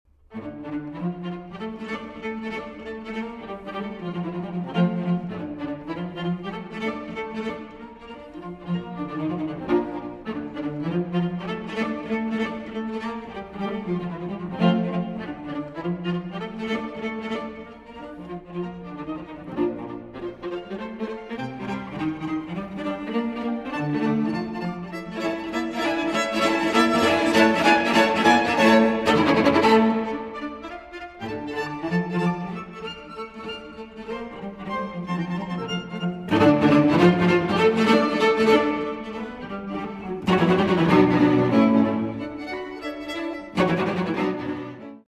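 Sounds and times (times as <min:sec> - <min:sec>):
string quartet playing presto in D minor: 0:00.2 - 0:45.0.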